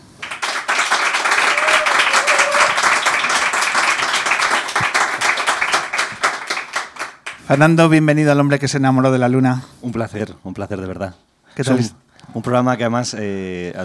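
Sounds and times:
audience applause: 0.1s - 7.6s
speech: 7.5s - 13.8s.

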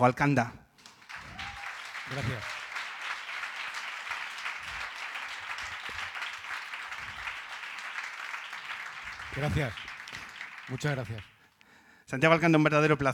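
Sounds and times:
speech: 0.0s - 0.6s, 2.1s - 2.6s, 9.4s - 9.9s, 10.7s - 11.3s, 12.1s - 13.1s
audience applause: 0.8s - 11.4s.

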